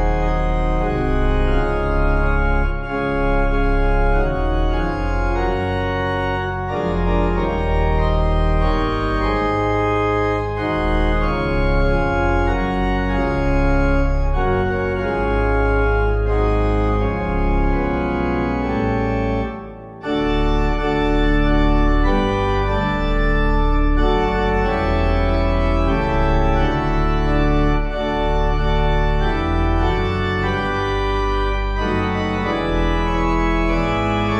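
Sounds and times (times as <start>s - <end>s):
organ music: 0.0s - 34.3s.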